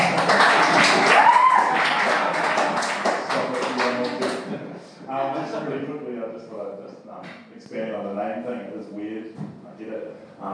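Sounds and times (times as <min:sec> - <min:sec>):
round of applause: 0:00.0 - 0:04.5
speech: 0:07.2 - 0:10.5.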